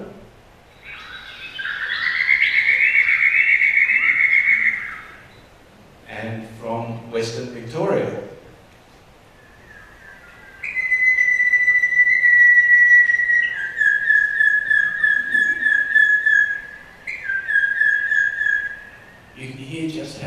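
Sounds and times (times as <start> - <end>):
bird singing whistled phrases with trills: 0.7 - 5.5, 9.3 - 19.6.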